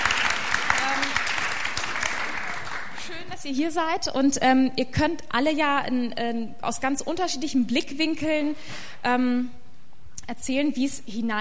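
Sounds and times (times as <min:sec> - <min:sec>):
audience applause: 0:00.0 - 0:03.2
speech: 0:03.4 - 0:09.6, 0:10.3 - 0:11.3.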